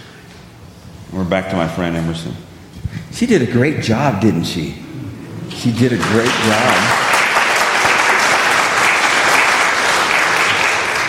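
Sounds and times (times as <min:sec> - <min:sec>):
speech: 0:01.1 - 0:02.5, 0:03.2 - 0:04.8, 0:05.5 - 0:07.0
audience applause: 0:05.5 - 0:11.0.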